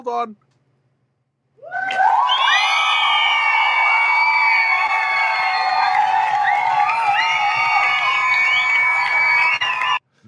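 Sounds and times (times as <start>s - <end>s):
speech: 0.1s - 0.5s
crowd cheering: 1.6s - 10.0s
group applause: 1.8s - 10.0s.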